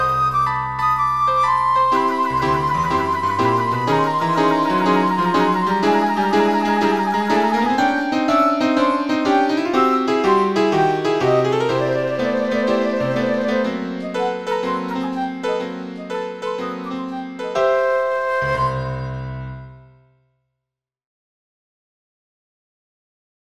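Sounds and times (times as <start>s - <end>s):
flute in a suite for flute and piano: 0.0s - 19.9s
piano in a suite for flute and piano: 0.0s - 20.2s.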